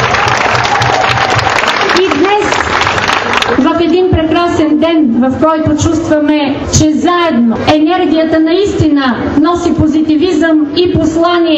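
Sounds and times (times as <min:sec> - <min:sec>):
audience applause: 0:00.0 - 0:03.6
speech: 0:03.8 - 0:11.5.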